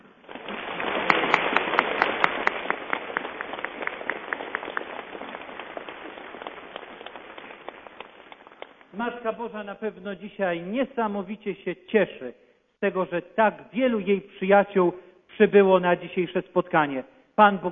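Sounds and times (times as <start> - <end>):
audience applause: 0.0 - 9.2
speech: 9.0 - 17.7.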